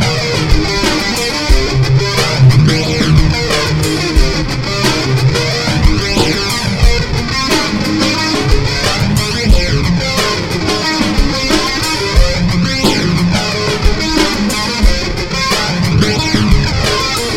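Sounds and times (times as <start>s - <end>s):
music jam with flanger effect: 0.0s - 17.3s.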